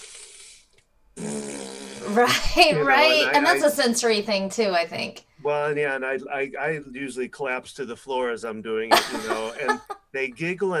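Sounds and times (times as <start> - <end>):
person blowing raspberries with the lips: 0.0 - 2.1
speech: 2.1 - 10.7
laughter: 8.9 - 10.0.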